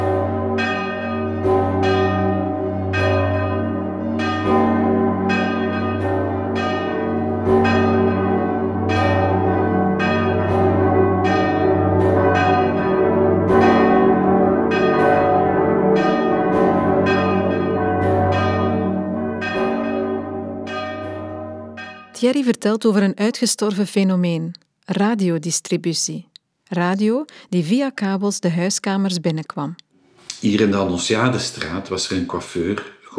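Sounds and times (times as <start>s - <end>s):
large cathedral and belfry church bells pealing: 0.0s - 22.5s
speech: 22.2s - 29.8s, 30.4s - 33.1s.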